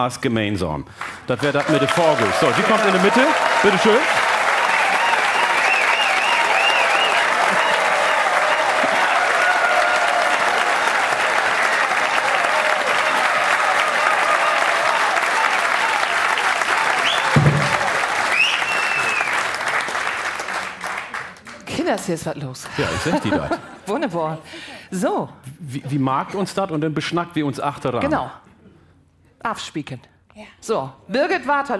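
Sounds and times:
speech: 0.0 - 4.3, 22.1 - 28.4, 29.4 - 31.7
audience applause: 1.0 - 21.7
laughter: 22.7 - 24.1.

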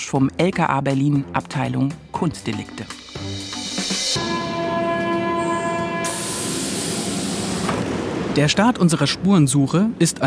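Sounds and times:
speech: 0.0 - 3.4, 4.0 - 4.9, 8.4 - 10.2
Berlin underground train at Platz der Luftbrücke U-Bahn station in Tempelhof: 2.5 - 10.2
underground train tonal whine and hissing: 2.9 - 8.5.

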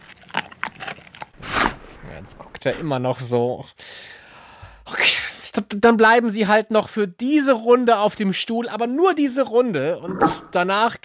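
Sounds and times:
dog chewing a treat: 0.0 - 1.4
speech: 2.2 - 4.2, 5.0 - 11.0.

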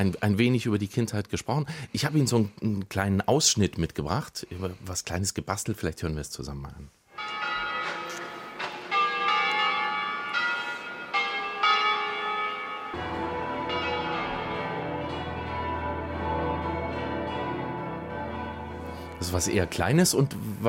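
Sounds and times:
speech: 0.0 - 7.6, 19.3 - 20.6
church bells from Ticino or northern Italy pealing: 7.1 - 20.6.

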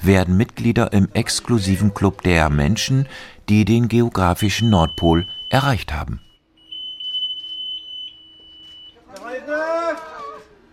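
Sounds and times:
speech: 0.0 - 6.2
high beep tone of ship's GPS: 4.4 - 9.0
cheering and excited voices: 9.1 - 10.6.

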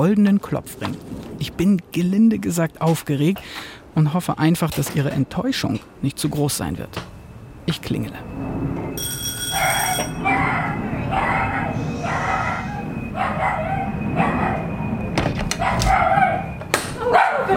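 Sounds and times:
speech: 0.0 - 7.1, 7.7 - 9.1
dog barking: 9.5 - 14.7, 15.6 - 17.5.

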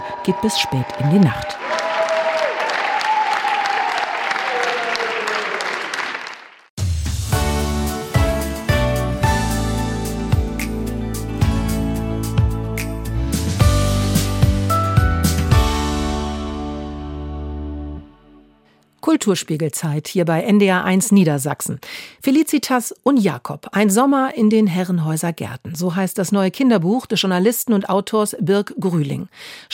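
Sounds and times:
audience applauding after a theatre performance: 0.0 - 6.7
speech: 0.2 - 1.7, 19.2 - 29.7
music with plucked notes and percussion: 6.8 - 17.0.

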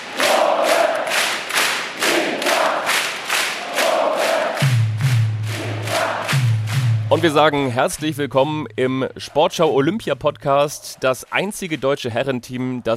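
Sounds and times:
beach volleyball fans chanting, cheering on a German men's duo: 0.0 - 4.8, 5.4 - 6.6
speech: 7.1 - 12.9.

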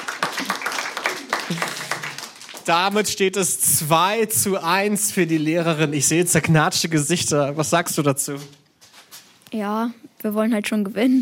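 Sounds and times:
applause for a contestant on a quiz game show: 0.0 - 3.3
speech: 1.5 - 1.7, 2.6 - 8.6, 9.5 - 11.2.

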